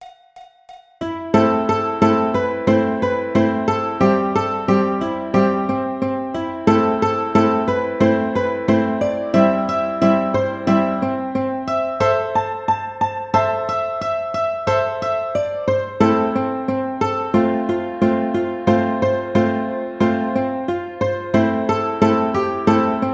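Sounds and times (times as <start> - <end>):
ukulele: 1.0 - 23.1.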